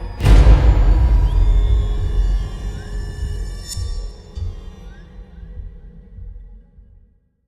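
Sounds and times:
medium music stinger with hit: 0:00.2 - 0:04.9.

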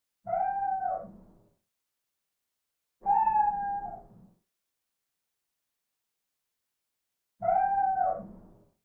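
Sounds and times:
cats in the background: 0:00.3 - 0:01.2, 0:03.0 - 0:04.1, 0:07.4 - 0:08.4.

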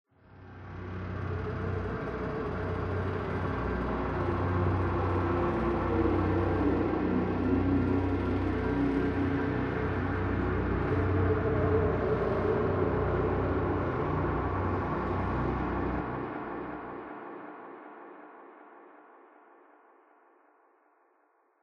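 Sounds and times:
dark synth pad for NPC combat: 0:00.2 - 0:19.4.

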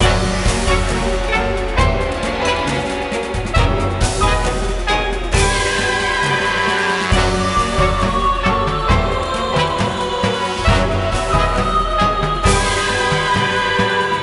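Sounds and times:
pirate battle: 0:00.0 - 0:14.2.

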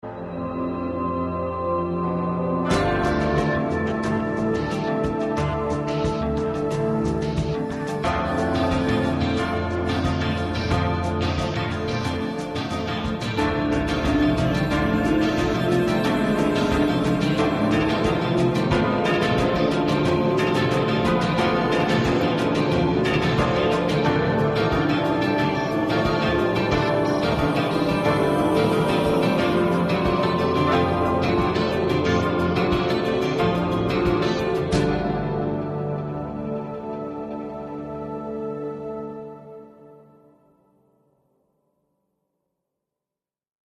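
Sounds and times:
tense music loop: 0:00.0 - 0:40.0.

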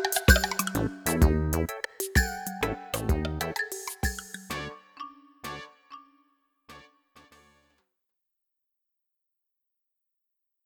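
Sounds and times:
comical music: 0:00.0 - 0:07.7.

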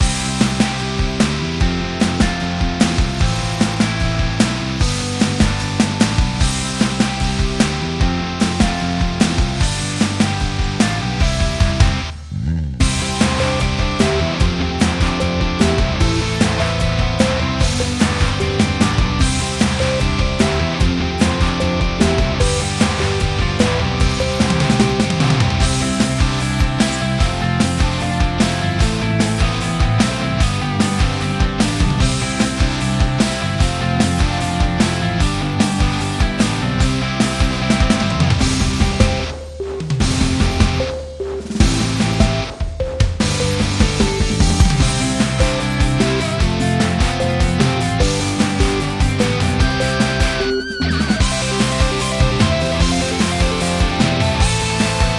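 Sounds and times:
rhythmic background music: 0:00.0 - 0:12.2, 0:12.8 - 0:55.1.

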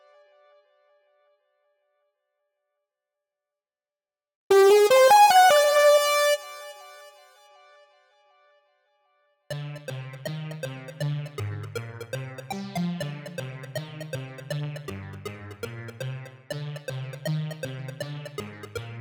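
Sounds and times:
synths: 0:04.5 - 0:07.0, 0:09.5 - 0:18.9.

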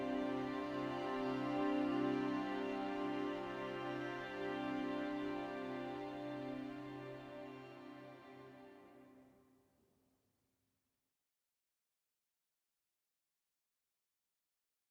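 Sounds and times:
field background music: 0:00.0 - 0:09.3.

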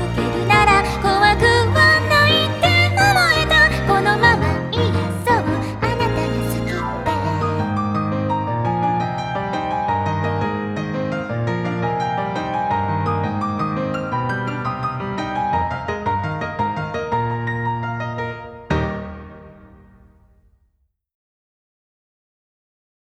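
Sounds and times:
vocals: 0:00.0 - 0:08.4
piano: 0:00.0 - 0:20.6.

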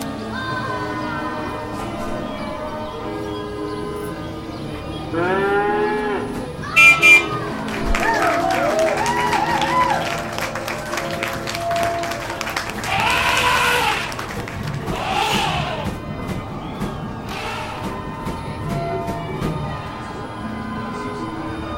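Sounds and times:
circus ambience loop: 0:00.0 - 0:21.7
laughter: 0:00.0 - 0:21.7.

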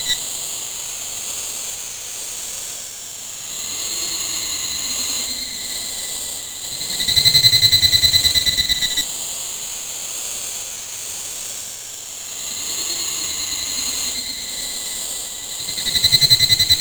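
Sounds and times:
cricket ambience: 0:00.0 - 0:00.2, 0:03.6 - 0:09.0, 0:12.5 - 0:16.7.

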